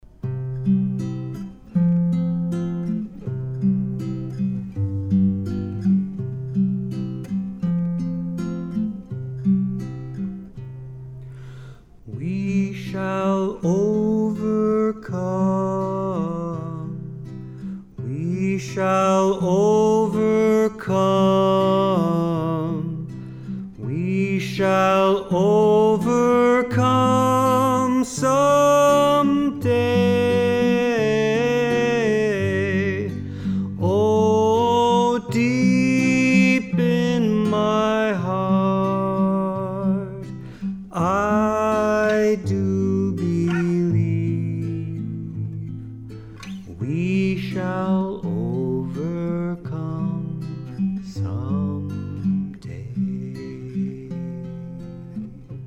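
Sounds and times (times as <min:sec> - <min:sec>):
guitar playing: 0:00.0 - 0:55.6
person singing: 0:12.1 - 0:17.2, 0:18.0 - 0:45.6, 0:46.6 - 0:54.7.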